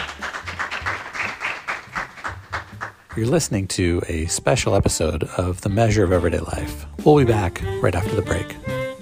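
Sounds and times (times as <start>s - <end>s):
audience applause: 0.0s - 3.3s
speech: 3.2s - 8.7s.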